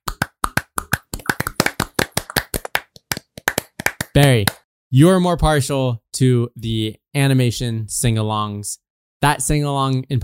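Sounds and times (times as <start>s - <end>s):
hosts clapping hands: 0.0s - 4.6s
speech: 4.2s - 10.2s.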